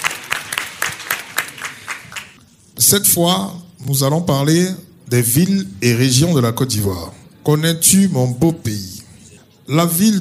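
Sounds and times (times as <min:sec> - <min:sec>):
audience clapping at a quiz show: 0:00.0 - 0:02.4
speech: 0:02.8 - 0:08.9, 0:09.7 - 0:10.2.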